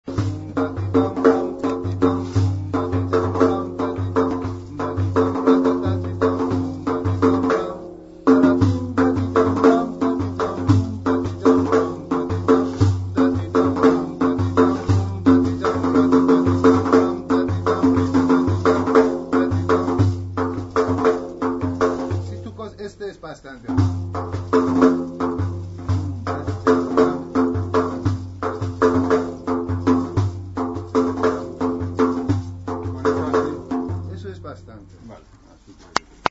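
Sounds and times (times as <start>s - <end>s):
chahar mezrab rhythm: 0.0s - 36.2s.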